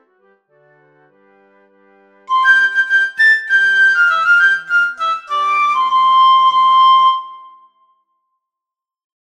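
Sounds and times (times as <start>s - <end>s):
piccolo: 2.3s - 8.1s.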